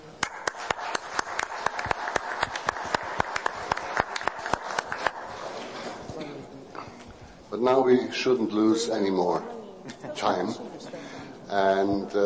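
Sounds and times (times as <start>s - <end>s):
audience applause for hosts: 0.2s - 6.2s
speech: 7.6s - 9.6s, 10.2s - 12.2s.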